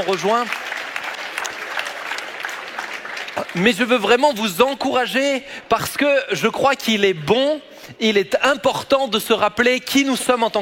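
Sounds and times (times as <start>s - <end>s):
speech: 0.0s - 0.6s, 3.4s - 10.6s
church congregation applauding: 0.0s - 4.6s.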